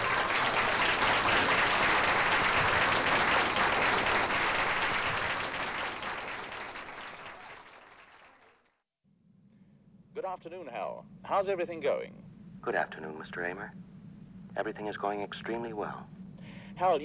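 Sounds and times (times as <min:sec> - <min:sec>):
audience applause: 0:00.0 - 0:08.8
speech: 0:10.4 - 0:13.9, 0:14.6 - 0:16.2, 0:16.8 - 0:17.0.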